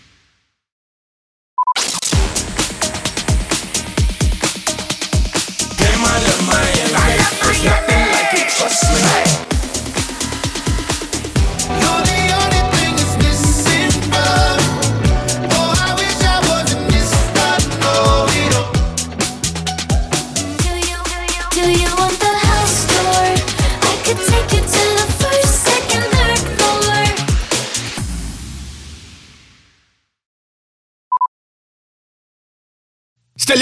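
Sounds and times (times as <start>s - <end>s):
sweeper beat mix: 2.1s - 28.0s.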